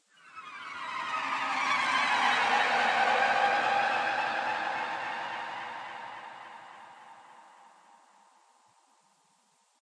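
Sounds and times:
combat string music: 0.1 - 8.0.

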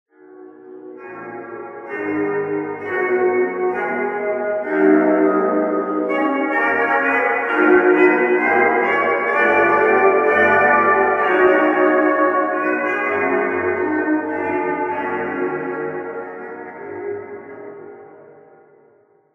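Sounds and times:
jazz music: 1.8 - 16.4.

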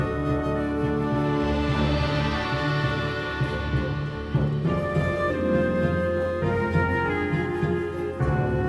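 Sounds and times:
outside exploration music: 0.2 - 8.6.

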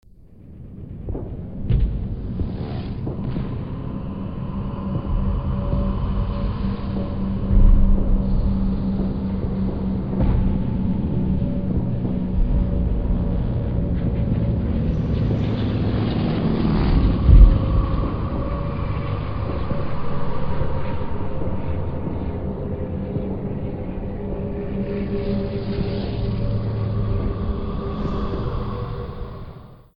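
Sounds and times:
trench ambience: 0.0 - 29.9.

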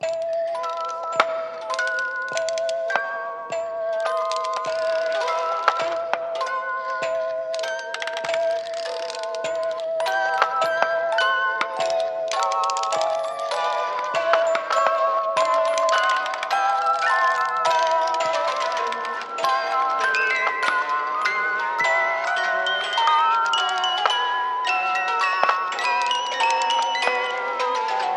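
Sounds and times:
ambience music box melody: 0.0 - 28.1.

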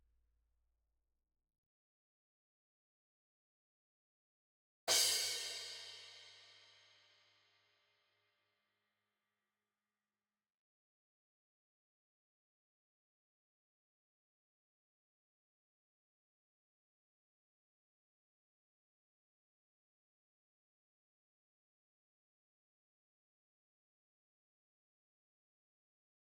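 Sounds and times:
drums: 4.9 - 6.9.

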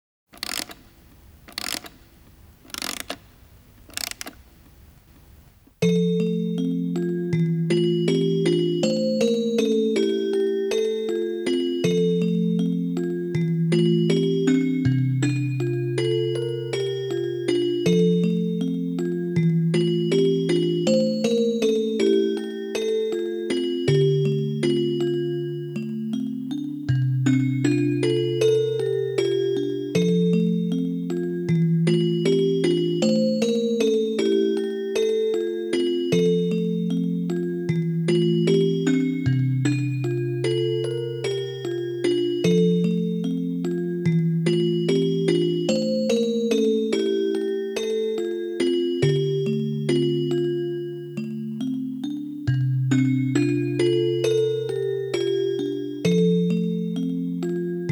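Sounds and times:
music box: 0.4 - 5.0, 5.8 - 57.9.

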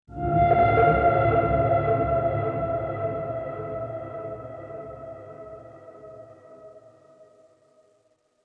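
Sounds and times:
tragic ending music: 0.1 - 6.7.

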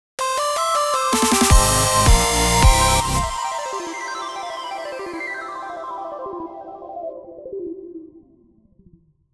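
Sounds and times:
victory fanfare: 0.2 - 4.2.

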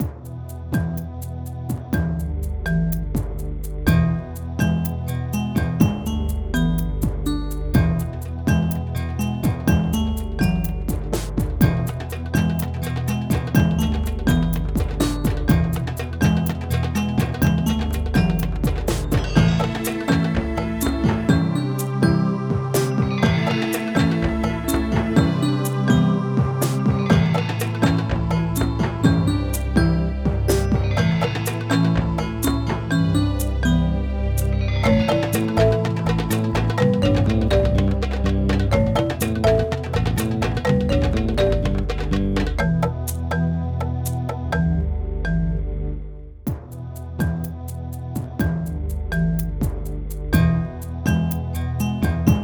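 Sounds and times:
music loop: 0.0 - 45.6, 46.5 - 52.4.

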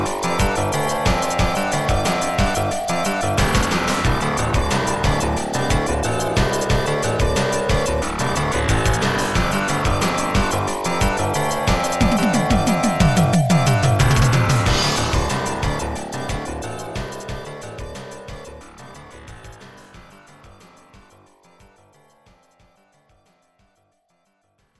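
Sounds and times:
boss stage game music: 0.0 - 18.4.

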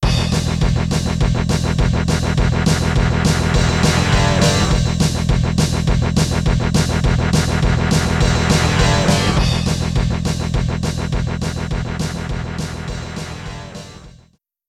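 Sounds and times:
rock movie background music: 0.0 - 14.3.

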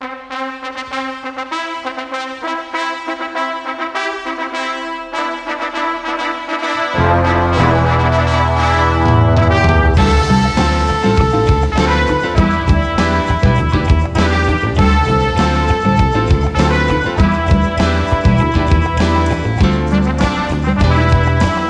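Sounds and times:
fanfare: 0.0 - 21.6.

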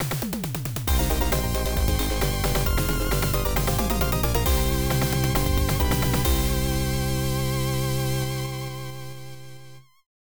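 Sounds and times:
game clear jingle: 0.9 - 8.4.

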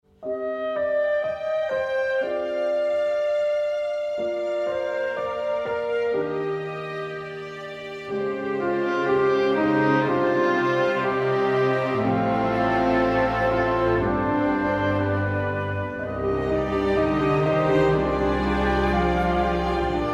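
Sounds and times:
field background music: 0.1 - 20.1.

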